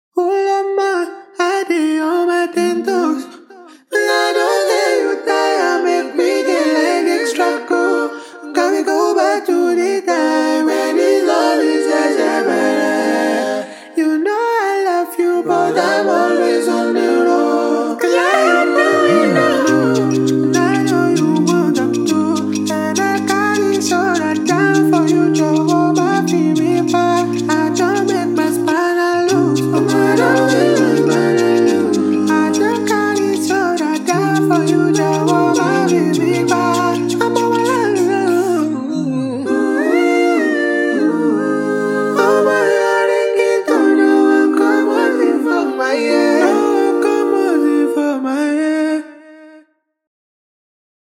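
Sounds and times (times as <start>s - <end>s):
a cappella singing: 0.2s - 49.7s.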